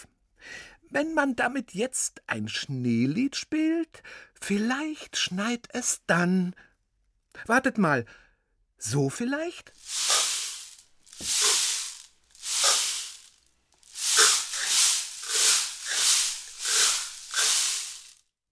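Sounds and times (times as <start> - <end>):
speech: 0.9 - 6.7, 7.4 - 8.2, 8.8 - 10.1, 11.2 - 11.5
rainstick played: 9.7 - 18.2.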